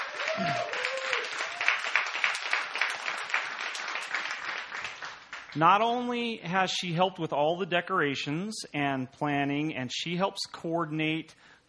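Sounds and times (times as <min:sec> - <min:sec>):
person cheering: 0:00.0 - 0:01.8
crowd applause: 0:00.0 - 0:05.6
speech: 0:00.4 - 0:00.8, 0:05.6 - 0:11.6.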